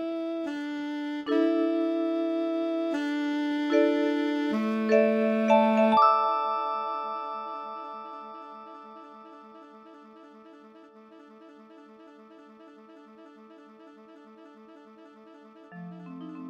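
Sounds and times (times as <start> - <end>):
MIDI soprano saxophone: 0.0 - 16.4
MIDI vibraphone: 3.7 - 8.2, 15.7 - 16.4.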